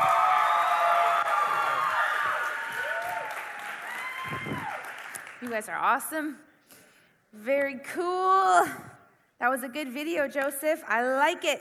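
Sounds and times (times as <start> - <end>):
audience standing ovation clapping and cheering: 0.0 - 5.6
speech: 5.5 - 6.5, 7.3 - 11.5.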